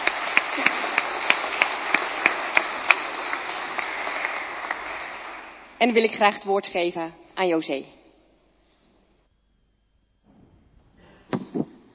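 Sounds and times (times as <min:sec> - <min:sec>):
small crowd applause: 0:00.0 - 0:05.8
speech: 0:00.6 - 0:00.8, 0:05.8 - 0:08.0.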